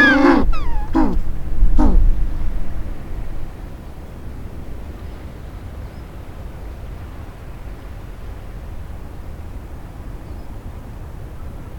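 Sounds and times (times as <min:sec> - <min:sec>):
penguin calls: 0:00.0 - 0:01.2, 0:01.8 - 0:02.0.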